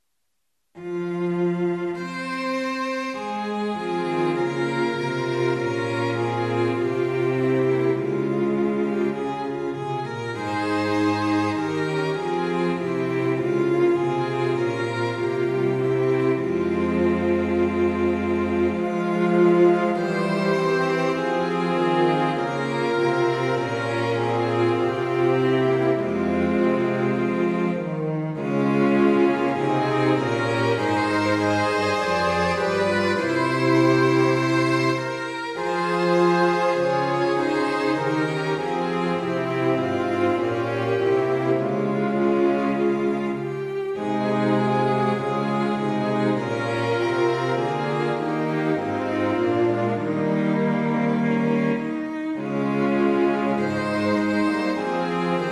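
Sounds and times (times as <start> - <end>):
bassoon: 0.8 - 55.5
strings: 0.8 - 55.5.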